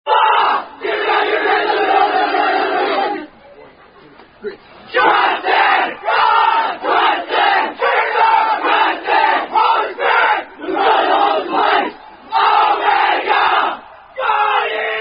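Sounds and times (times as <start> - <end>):
fraternity chanting a cheer: 0.1 - 3.3, 4.9 - 15.0.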